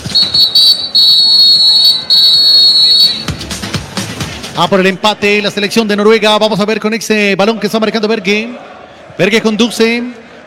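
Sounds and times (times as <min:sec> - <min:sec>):
referee's whistle: 0:00.1 - 0:03.5
speech: 0:04.6 - 0:10.2.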